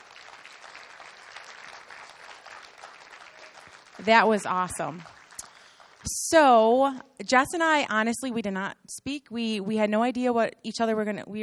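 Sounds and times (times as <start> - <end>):
audience applause: 0.0 - 6.1
speech: 4.0 - 5.2, 6.3 - 11.4.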